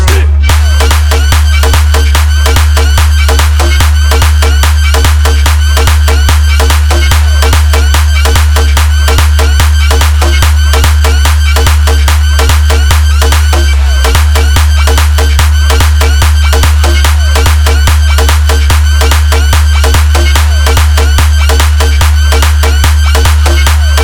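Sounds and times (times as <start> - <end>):
phonk music: 0.0 - 24.0.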